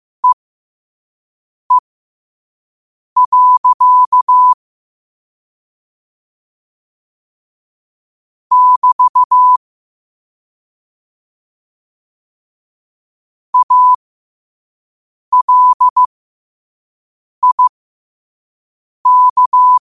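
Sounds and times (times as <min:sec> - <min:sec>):
morse code at 5 wpm: 0:03.2 - 0:04.6, 0:08.5 - 0:09.6, 0:13.6 - 0:14.0, 0:15.4 - 0:16.1, 0:17.4 - 0:17.7, 0:19.1 - 0:19.8.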